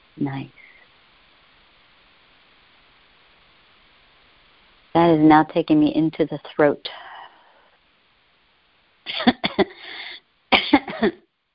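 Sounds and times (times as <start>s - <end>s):
speech: 0.2s - 0.7s, 5.0s - 7.1s, 9.1s - 9.4s, 11.0s - 11.2s
person choking coughing from tightness in the throat and larynx: 9.1s - 9.8s, 10.6s - 11.2s.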